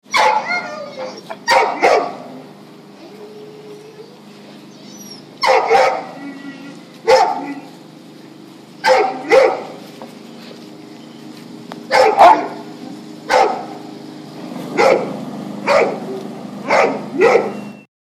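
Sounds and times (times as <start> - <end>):
Presa Canario dog: 0.1 - 2.2, 4.9 - 7.7, 8.8 - 9.8, 11.9 - 12.6, 14.8 - 15.1, 16.7 - 17.6.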